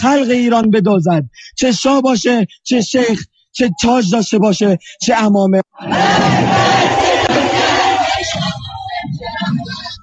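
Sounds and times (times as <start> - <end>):
speech: 0.0 - 7.0
thousands of protesters chanting against the Iranian regime outside UN headquarters New York: 5.7 - 9.9.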